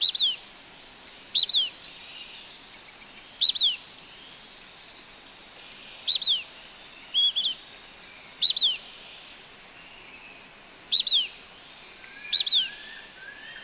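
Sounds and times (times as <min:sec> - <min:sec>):
Blackish pewee calling: 0:00.0 - 0:00.4, 0:01.3 - 0:01.9, 0:03.4 - 0:03.8, 0:06.0 - 0:06.5, 0:07.1 - 0:07.7, 0:08.4 - 0:08.9, 0:10.9 - 0:11.4, 0:12.0 - 0:13.6.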